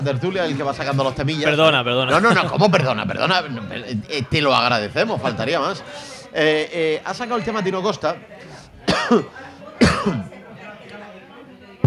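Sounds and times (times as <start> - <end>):
speech: 0.0 - 8.4, 9.0 - 10.4
person coughing from choking: 8.9 - 10.3.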